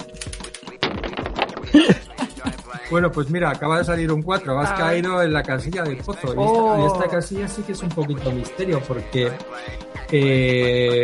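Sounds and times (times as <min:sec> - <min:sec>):
dice rolling: 0:00.0 - 0:01.8
laughter: 0:01.6 - 0:03.0
speech: 0:02.9 - 0:11.0.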